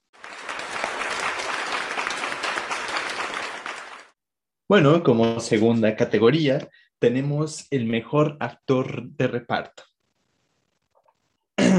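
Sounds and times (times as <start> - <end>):
audience applause: 0.0 - 4.2
speech: 4.7 - 9.9.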